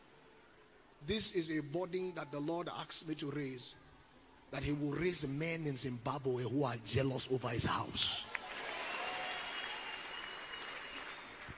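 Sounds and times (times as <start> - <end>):
speech: 1.0 - 3.9, 4.5 - 8.4
audience clapping: 8.2 - 11.5.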